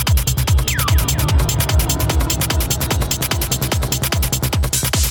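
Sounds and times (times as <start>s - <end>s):
dirty noise: 0.2s - 5.0s.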